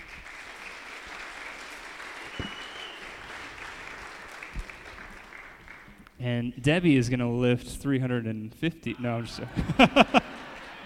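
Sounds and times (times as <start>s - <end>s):
audience applause: 0.0s - 6.0s, 9.9s - 10.8s
speech: 6.2s - 10.2s
laughter: 8.9s - 10.8s.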